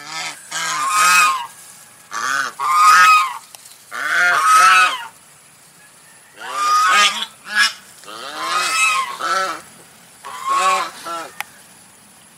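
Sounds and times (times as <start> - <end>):
domestic goose honking: 0.0 - 5.2, 6.4 - 11.4.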